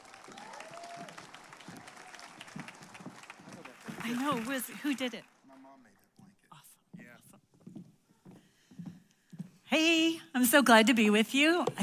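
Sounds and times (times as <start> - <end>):
church congregation applauding to welcome a speaker on Mother's Day: 0.0 - 6.1
speech: 4.1 - 5.4, 9.8 - 11.8.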